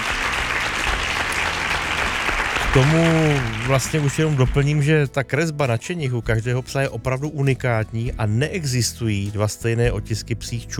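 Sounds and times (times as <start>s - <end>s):
applause for a contestant: 0.0s - 4.8s
speech: 2.8s - 10.7s.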